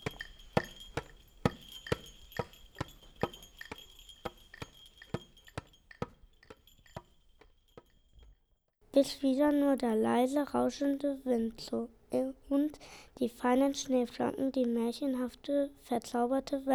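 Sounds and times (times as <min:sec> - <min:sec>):
footsteps of Santa Claus and donkey: 0:00.0 - 0:08.0
small bells jingling: 0:00.0 - 0:08.4
speech: 0:09.0 - 0:16.7.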